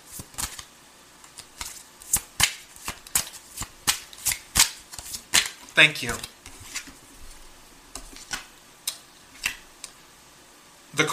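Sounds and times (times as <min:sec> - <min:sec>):
tarot cards being shuffled and drawn: 0:00.1 - 0:08.5
speech: 0:05.8 - 0:06.3.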